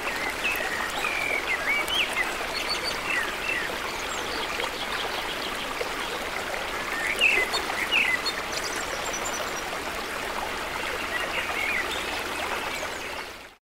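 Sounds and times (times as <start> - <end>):
birds in the trees: 0.0 - 13.4
fast river in a forest: 0.0 - 13.6.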